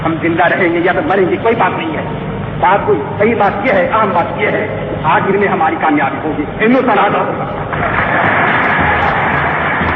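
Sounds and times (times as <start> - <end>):
speech: 0.1 - 8.3
thunderous applause: 7.6 - 9.9.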